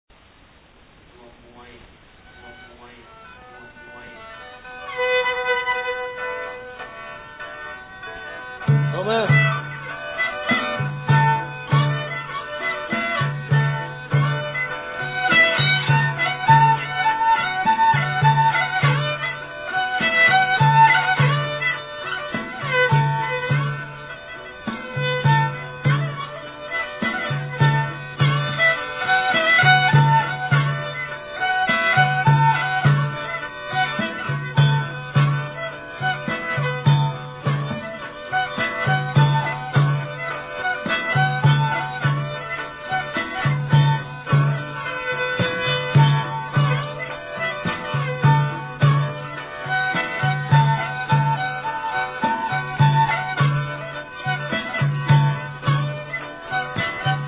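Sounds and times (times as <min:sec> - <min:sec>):
Lao Phuthay folk dance instrumental music: 0:00.1 - 0:57.2
kachappi: 0:00.1 - 0:57.2
khen: 0:00.1 - 0:57.2
kong hang drum: 0:04.8 - 0:57.2.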